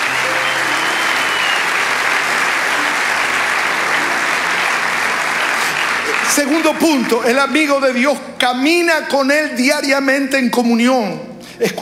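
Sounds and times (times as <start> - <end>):
audience applause: 0.0 - 8.1
speech: 6.4 - 11.7.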